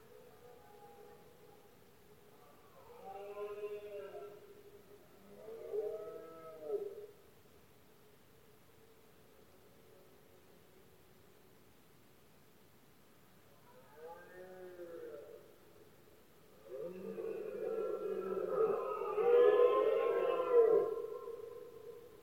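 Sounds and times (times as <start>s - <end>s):
quiet background hiss: 0.0s - 22.2s
red deer bellowing: 16.6s - 22.0s.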